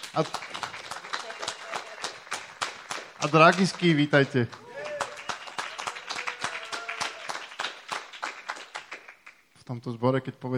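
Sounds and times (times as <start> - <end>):
audience applause: 0.0 - 9.4
speech: 0.1 - 0.6, 3.2 - 4.6, 9.7 - 10.5.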